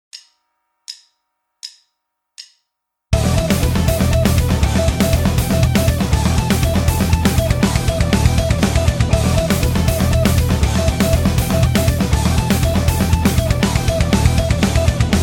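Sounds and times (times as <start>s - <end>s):
guitar: 3.2s - 15.2s.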